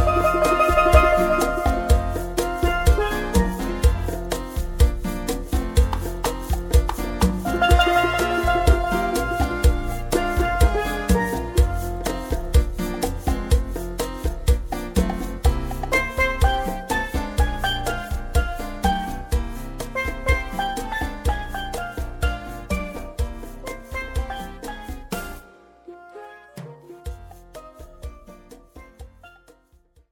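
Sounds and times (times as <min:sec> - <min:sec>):
steel drum playing: 0:00.0 - 0:29.7.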